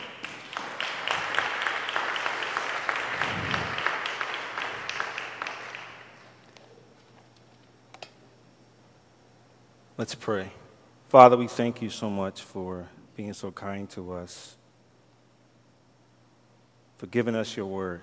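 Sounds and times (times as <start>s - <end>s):
audience hand clapping: 0.0s - 6.6s
speech: 10.0s - 14.6s, 17.0s - 18.0s.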